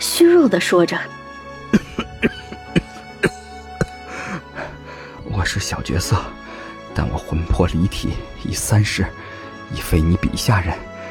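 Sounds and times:
speech: 0:00.2 - 0:02.1, 0:05.4 - 0:06.4, 0:07.0 - 0:10.9
person coughing: 0:01.7 - 0:04.4.

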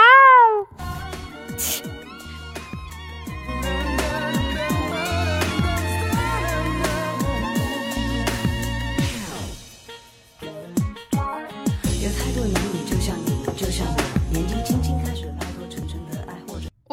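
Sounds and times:
person imitating cat meowing at tomcat: 0:00.0 - 0:00.7
music with a beat: 0:00.8 - 0:16.7.

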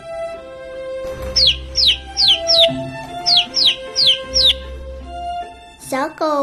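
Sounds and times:
chick chirping: 0:01.2 - 0:04.7
speech: 0:05.9 - 0:06.4.

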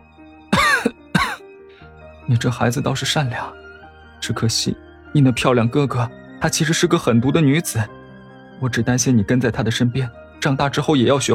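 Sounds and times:
harsh raspy coughs: 0:00.5 - 0:01.4
speech: 0:02.3 - 0:03.6, 0:04.2 - 0:08.0, 0:08.6 - 0:11.3.

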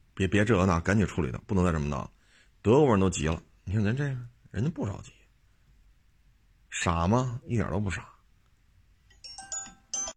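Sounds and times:
speech: 0:00.2 - 0:05.2, 0:06.7 - 0:08.1
phone ringtone with bright electronic chime notes: 0:09.1 - 0:10.1.

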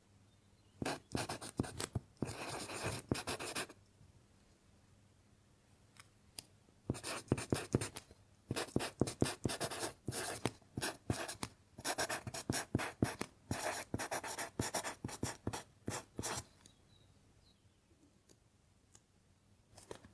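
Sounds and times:
pencil writing on paper: 0:00.8 - 0:03.7, 0:06.9 - 0:16.4.

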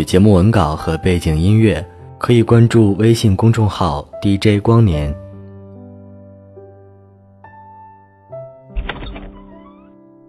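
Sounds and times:
speech: 0:00.0 - 0:05.2
door opening and closing: 0:08.7 - 0:10.0.

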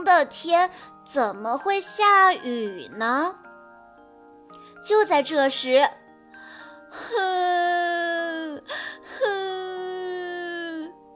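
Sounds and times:
speech: 0:00.1 - 0:03.4, 0:04.8 - 0:06.0, 0:06.9 - 0:08.0
person crying wail: 0:07.0 - 0:11.0.

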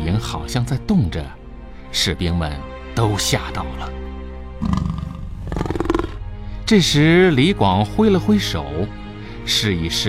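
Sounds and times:
speech: 0:00.2 - 0:04.0, 0:04.6 - 0:04.9, 0:06.7 - 0:10.0
tiger roaring: 0:04.6 - 0:06.3.

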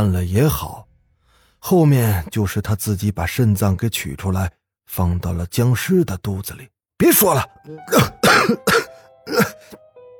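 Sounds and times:
speech: 0:00.0 - 0:00.8, 0:01.6 - 0:09.8
violent coughing after choking on water: 0:07.8 - 0:09.8.

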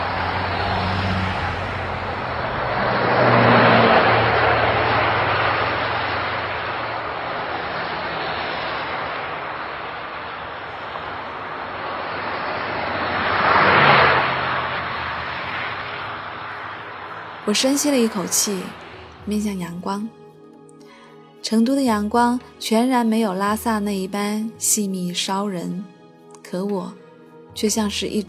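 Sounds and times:
bus pulling away and driving off: 0:00.0 - 0:21.4
road noise: 0:00.0 - 0:28.2
speech: 0:17.5 - 0:20.2, 0:21.4 - 0:27.0, 0:27.6 - 0:28.2.

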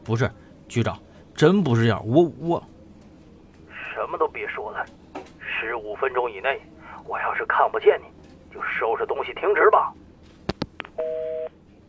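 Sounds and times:
speech: 0:00.0 - 0:02.7, 0:04.0 - 0:05.0, 0:05.6 - 0:10.0, 0:11.0 - 0:11.4
telephone busy tone after hang-up: 0:11.0 - 0:11.5.

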